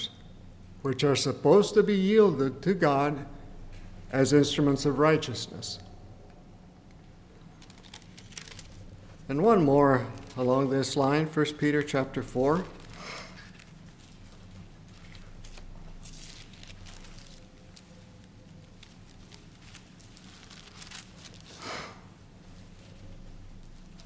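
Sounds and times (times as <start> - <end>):
speech: 0.8 - 3.4, 4.1 - 5.9, 9.3 - 12.8
person sniffling from allergies: 21.5 - 22.1.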